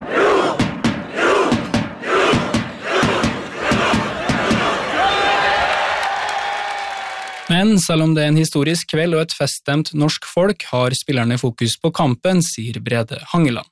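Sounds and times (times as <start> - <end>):
large crowd of football fans chanting: 0.0 - 6.0
people clapping: 2.2 - 7.8
speech: 7.6 - 13.7.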